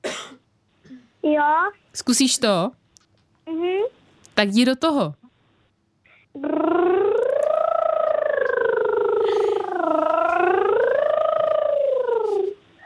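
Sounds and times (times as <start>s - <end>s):
speech: 1.2s - 2.8s, 3.5s - 5.2s
child imitating a motorcycle with lips: 6.4s - 12.6s.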